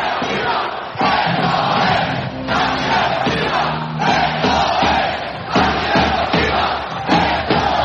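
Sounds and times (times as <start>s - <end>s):
basketball crowd at a Baxi Manresa game shouting in protest: 0.0s - 7.8s.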